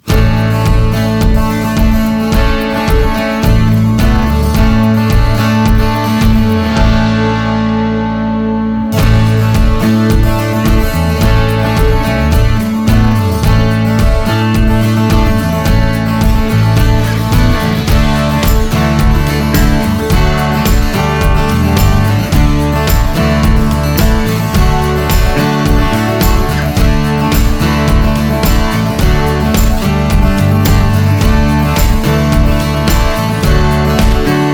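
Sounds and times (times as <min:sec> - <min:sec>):
full music mix: 0:00.0 - 0:34.5.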